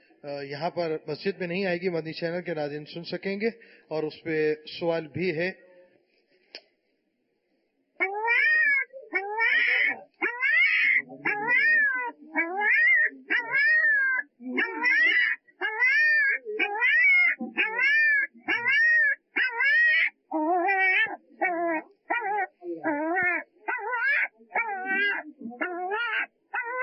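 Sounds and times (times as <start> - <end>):
speech: 0.2 - 5.6
puppy trapped behind its mother whimpering in pain: 8.0 - 26.8.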